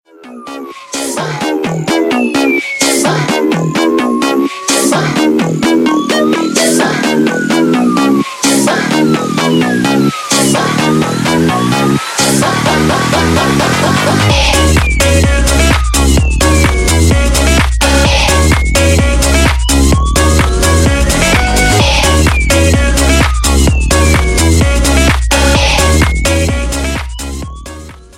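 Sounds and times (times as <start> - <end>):
electro mix: 0.0 - 28.1.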